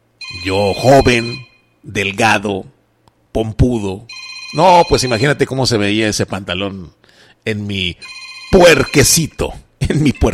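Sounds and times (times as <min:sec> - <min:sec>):
telephone ringing with a steady electronic tone: 0:00.2 - 0:01.7, 0:04.1 - 0:05.5, 0:08.0 - 0:09.4
speech: 0:00.4 - 0:02.7, 0:03.4 - 0:10.3.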